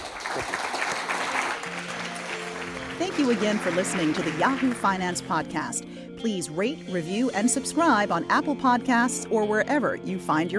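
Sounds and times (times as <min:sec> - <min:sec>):
audience round of applause: 0:00.0 - 0:05.1
speech: 0:00.4 - 0:00.6, 0:03.0 - 0:10.5.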